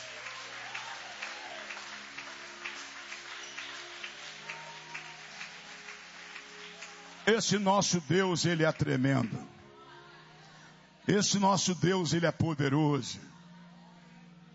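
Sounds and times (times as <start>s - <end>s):
audience clapping hands: 0.0s - 9.6s
speech: 7.3s - 9.5s, 11.1s - 13.3s.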